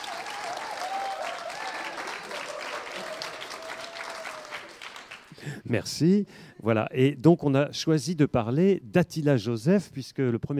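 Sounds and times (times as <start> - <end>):
audience applause: 0.0 - 5.4
speech: 5.4 - 10.5.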